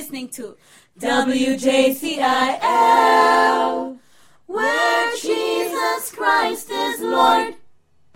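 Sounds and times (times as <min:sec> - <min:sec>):
light gospel jingle: 0:01.0 - 0:07.6.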